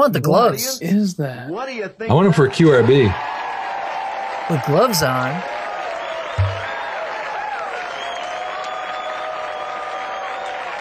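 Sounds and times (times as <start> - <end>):
speech: 0.0 - 3.4, 4.5 - 5.6
large studio audience clapping: 2.7 - 10.7
cheers and whoops: 2.8 - 4.7, 5.4 - 10.7
dull thump: 6.4 - 6.8.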